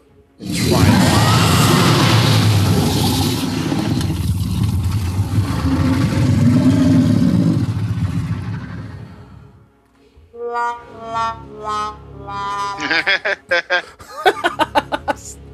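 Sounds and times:
monster roar sound effect: 0:00.4 - 0:09.4
laughter: 0:12.8 - 0:15.4.

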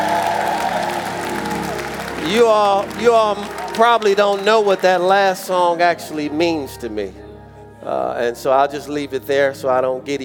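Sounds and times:
round of applause for band: 0:00.0 - 0:05.8
speech: 0:02.3 - 0:07.2, 0:07.8 - 0:10.2.

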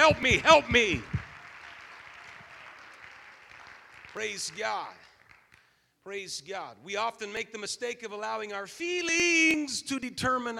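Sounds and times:
audience clapping hands: 0:00.0 - 0:05.9
speech: 0:00.1 - 0:01.2, 0:04.2 - 0:05.1, 0:06.0 - 0:10.5.

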